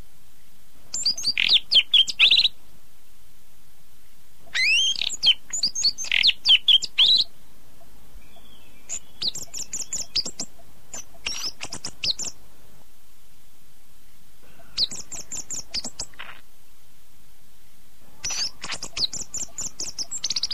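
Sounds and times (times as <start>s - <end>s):
bird song with whistles, chattering trills and chirps: 0.9s - 2.6s, 4.0s - 12.4s, 14.0s - 16.4s, 18.2s - 20.5s.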